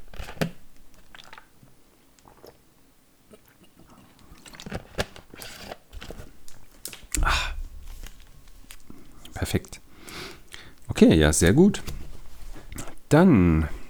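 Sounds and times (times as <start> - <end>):
person sipping Tennessee Sour Mash whiskey: 7.1 - 10.9, 11.8 - 13.8
speech: 9.5 - 9.8, 11.0 - 11.9, 13.1 - 13.8.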